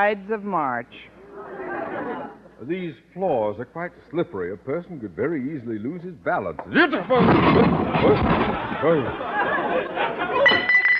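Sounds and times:
speech: 0.0 - 9.4
laughter: 1.3 - 2.6, 7.4 - 10.7
heavy statue toppling and crashing into fragments: 7.1 - 8.8.

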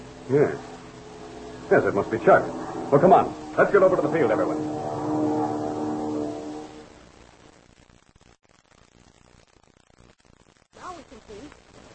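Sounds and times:
small propeller plane flying overhead: 0.0 - 7.0
speech: 0.3 - 0.7, 1.7 - 5.0.

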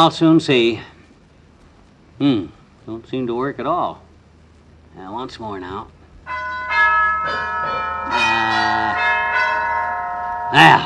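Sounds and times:
speech: 0.0 - 0.9, 2.2 - 4.0, 5.0 - 6.5, 10.5 - 10.8
electric gong doorbell ringing: 6.3 - 10.8.

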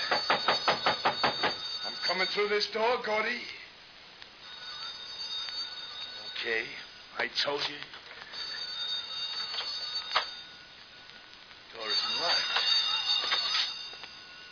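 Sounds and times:
telephone ringing: 0.0 - 3.1, 4.4 - 7.1, 8.2 - 10.9, 11.8 - 14.5
speech: 2.2 - 3.6, 6.4 - 8.0.

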